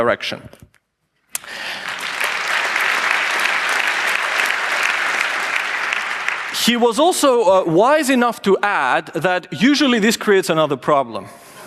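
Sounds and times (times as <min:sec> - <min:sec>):
speech: 0:00.0 - 0:00.8, 0:06.6 - 0:11.4
audience applause: 0:01.4 - 0:07.6.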